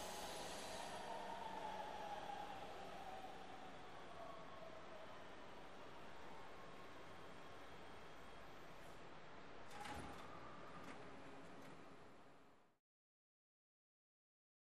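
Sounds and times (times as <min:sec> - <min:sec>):
subway train accelerating: 0:00.0 - 0:12.6.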